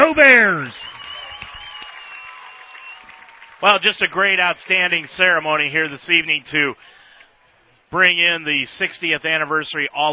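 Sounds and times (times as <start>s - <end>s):
crowd applauding: 0.0s - 5.5s
speech: 0.2s - 0.9s, 3.6s - 6.9s, 7.9s - 10.1s.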